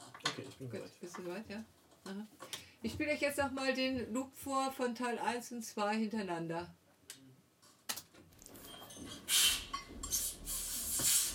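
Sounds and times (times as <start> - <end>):
speech: 0.4 - 6.8
hissing atmosphere: 9.3 - 11.3.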